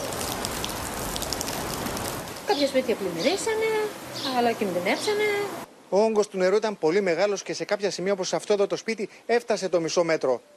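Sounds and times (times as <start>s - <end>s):
heavy rain falling on streets: 0.0s - 7.0s
speech: 2.5s - 10.5s.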